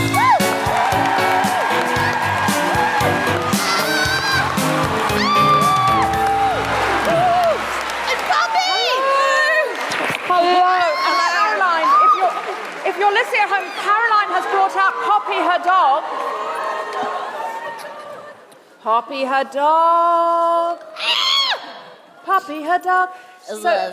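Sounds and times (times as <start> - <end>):
audience applauding: 0.0 - 18.3
speech: 19.1 - 21.2, 22.3 - 23.9.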